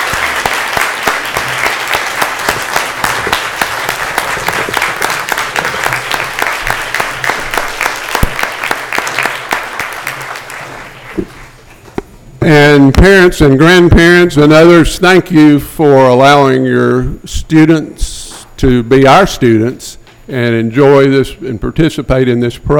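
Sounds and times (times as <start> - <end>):
audience applause: 0.0 - 11.6
speech: 12.5 - 22.7.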